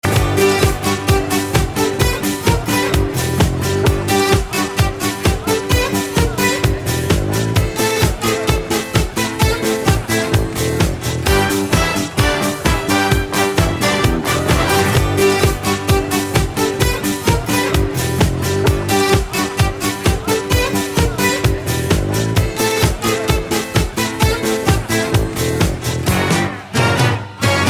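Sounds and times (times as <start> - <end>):
Greek rhythm: 0.0 - 27.6.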